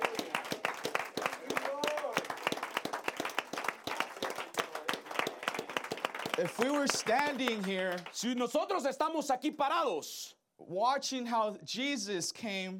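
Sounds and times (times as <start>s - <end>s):
audience applause: 0.0s - 8.3s
speech: 6.4s - 12.7s.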